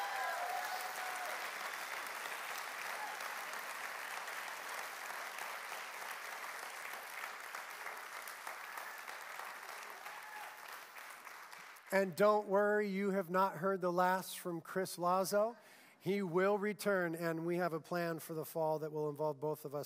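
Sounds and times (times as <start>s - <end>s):
audience applauding: 0.0s - 11.9s
speech: 11.9s - 19.8s.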